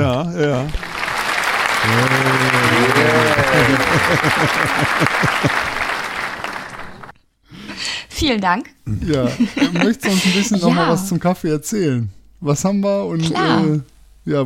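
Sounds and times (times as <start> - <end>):
speech: 0.2 - 0.9, 1.8 - 5.7, 8.2 - 14.4
clapping: 0.7 - 7.1
laughter: 1.8 - 6.8, 9.1 - 10.7.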